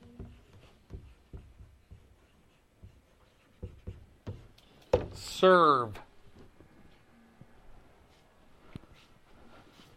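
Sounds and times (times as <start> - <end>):
handwriting with a pen: 0.0 - 4.6
speech: 5.2 - 6.0.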